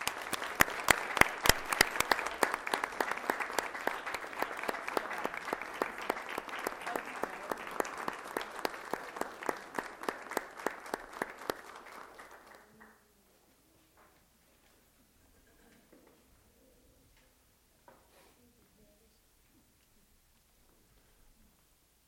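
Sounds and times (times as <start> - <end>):
audience applause: 0.0 - 13.0.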